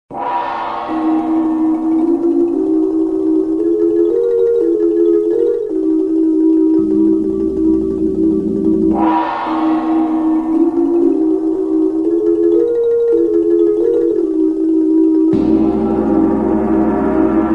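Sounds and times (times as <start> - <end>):
marimba: 0.2 - 17.4.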